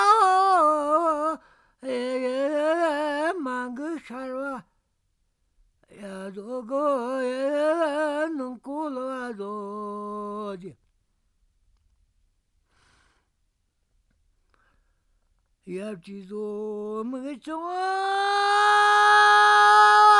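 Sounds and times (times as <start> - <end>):
folk song: 0.0 - 4.7, 5.8 - 10.9, 14.4 - 20.1.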